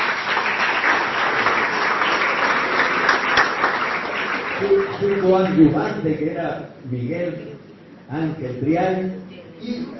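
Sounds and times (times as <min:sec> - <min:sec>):
audience applause: 0:00.0 - 0:05.6
speech: 0:05.0 - 0:09.9.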